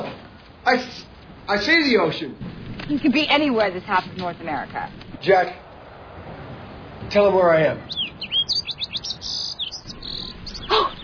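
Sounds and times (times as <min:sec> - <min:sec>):
speech: 0:00.7 - 0:05.6, 0:07.1 - 0:08.1
pygmy nuthatch calling: 0:07.9 - 0:11.0.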